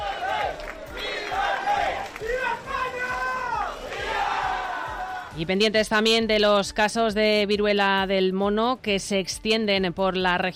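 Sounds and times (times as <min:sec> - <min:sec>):
crowd applauding: 0:00.0 - 0:05.4
speech: 0:05.4 - 0:10.5.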